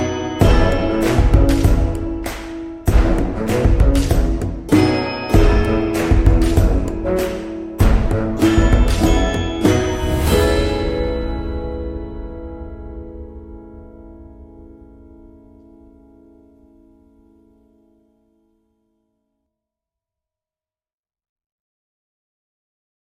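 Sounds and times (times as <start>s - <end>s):
medieval bardcore music: 0.0s - 14.0s.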